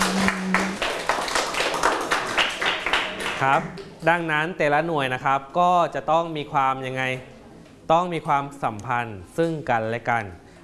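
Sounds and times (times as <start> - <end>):
students clapping hands: 0.0 - 3.6
speech: 3.4 - 7.3, 7.9 - 10.4.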